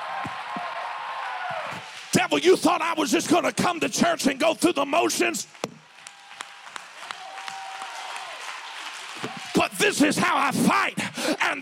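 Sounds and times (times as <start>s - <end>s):
crowd clapping hands: 0.0s - 2.6s, 5.4s - 10.5s
speech: 2.1s - 5.7s, 9.9s - 11.6s.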